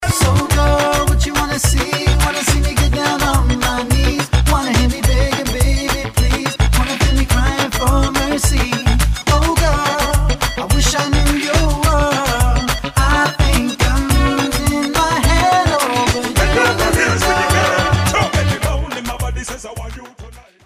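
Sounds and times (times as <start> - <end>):
reggae music: 0.0 - 20.6.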